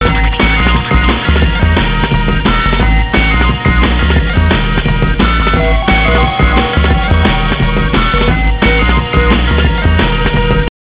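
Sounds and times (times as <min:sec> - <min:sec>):
drum and bass music: 0:00.0 - 0:10.7.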